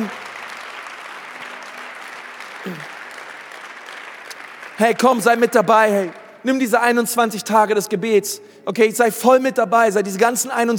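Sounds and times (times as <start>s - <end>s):
audience applause: 0.0s - 6.2s
speech: 2.6s - 2.9s, 4.8s - 10.7s.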